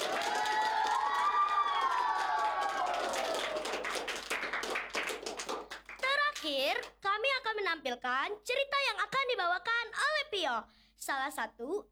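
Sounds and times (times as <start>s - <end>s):
drawn-out cheering voice: 0.0s - 3.7s
audience clapping at a children's school talent show: 0.0s - 7.0s
speech: 7.8s - 11.9s.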